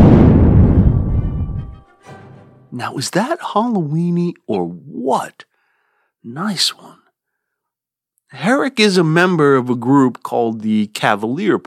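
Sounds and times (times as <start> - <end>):
thunder clap: 0.0 - 1.8
speech: 2.8 - 5.5, 6.2 - 7.0, 8.3 - 11.6.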